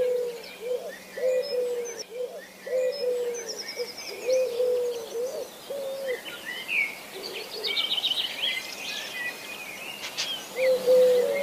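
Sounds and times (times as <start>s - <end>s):
Eurasian collared dove cooing: 0.0s - 6.4s, 7.1s - 7.9s, 10.5s - 11.4s.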